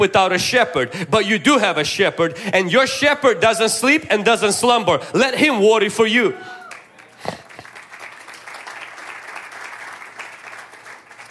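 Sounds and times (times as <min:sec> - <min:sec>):
speech: 0:00.0 - 0:06.6
large audience clapping: 0:06.5 - 0:11.2.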